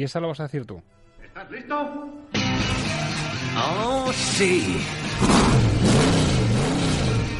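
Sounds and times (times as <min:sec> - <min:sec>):
speech: 0:00.0 - 0:06.2
race car engine revving, Lightning McQueen from the film Cars: 0:04.1 - 0:07.3.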